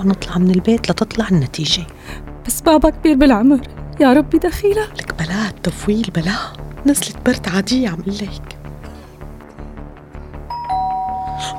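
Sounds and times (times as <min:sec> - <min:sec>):
speech: 0:00.0 - 0:08.5
doorbell ringing with a two-tone chime: 0:10.5 - 0:11.5.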